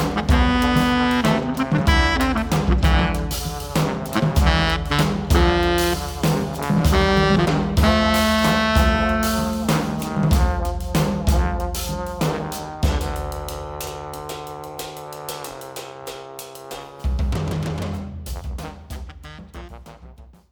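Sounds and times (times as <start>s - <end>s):
brass band playing: 0.0s - 20.4s.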